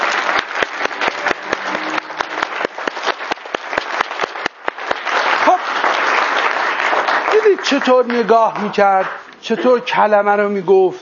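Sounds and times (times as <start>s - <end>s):
audience applause in honour of all mothers: 0.0s - 9.3s
speech: 7.7s - 11.0s.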